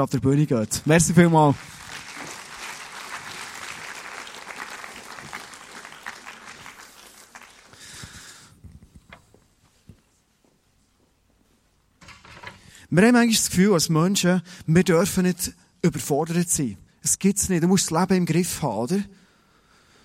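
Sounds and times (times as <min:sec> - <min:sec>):
speech: 0:00.0 - 0:02.0, 0:12.9 - 0:19.2
audience applause: 0:00.7 - 0:08.4.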